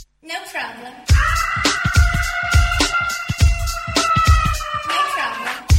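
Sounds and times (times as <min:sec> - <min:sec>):
karaoke singing: 0:01.1 - 0:05.7.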